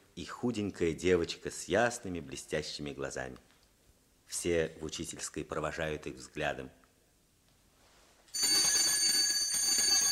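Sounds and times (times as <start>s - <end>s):
speech: 0.2s - 3.5s, 4.3s - 6.8s
electric school bell ringing at the end of a break: 8.3s - 10.0s.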